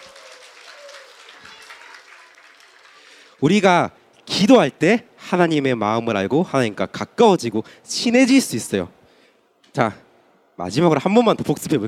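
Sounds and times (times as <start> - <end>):
group clapping applause: 0.0 - 3.6
speech: 3.4 - 9.0, 9.8 - 10.0, 10.6 - 11.8.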